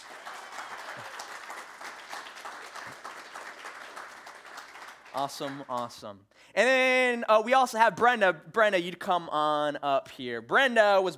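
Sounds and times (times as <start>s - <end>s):
audience applause: 0.0s - 5.8s
speech: 5.2s - 11.1s.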